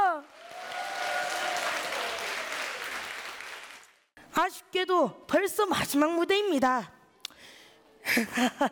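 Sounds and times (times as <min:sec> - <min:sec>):
audience applause: 0:00.2 - 0:04.1
speech: 0:04.4 - 0:07.0, 0:08.2 - 0:08.6.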